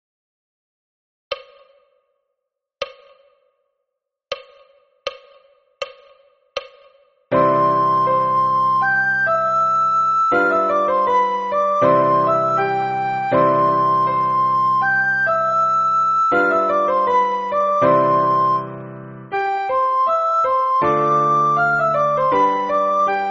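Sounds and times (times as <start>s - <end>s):
soprano singing slowly: 7.3s - 23.2s.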